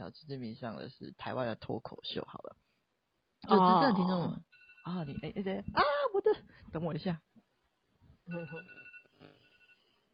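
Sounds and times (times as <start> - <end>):
speech: 0.1 - 2.6, 3.4 - 7.3, 8.3 - 9.3
alarm clock ringing: 4.5 - 5.1, 8.4 - 9.9.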